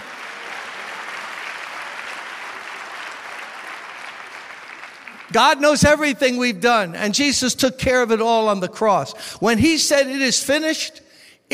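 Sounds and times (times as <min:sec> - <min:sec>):
audience applauding: 0:00.0 - 0:05.6
speech: 0:05.3 - 0:11.5.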